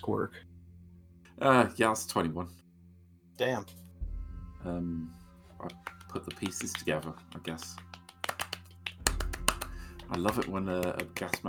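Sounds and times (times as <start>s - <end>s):
speech: 0.0s - 0.5s, 1.4s - 2.6s, 3.4s - 3.8s, 4.6s - 7.9s, 10.1s - 11.4s
golf clap: 5.6s - 11.4s.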